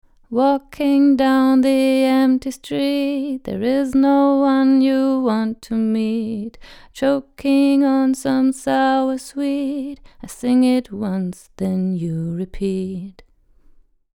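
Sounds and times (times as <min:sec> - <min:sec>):
vocals recorded with Rode NT1 and RME FF800: 0:00.0 - 0:13.4.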